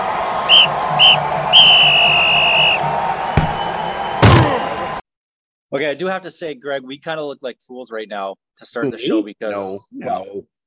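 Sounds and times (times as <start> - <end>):
referee's whistle for a football opening kickoff: 0.4 - 4.4
speech: 5.7 - 10.5.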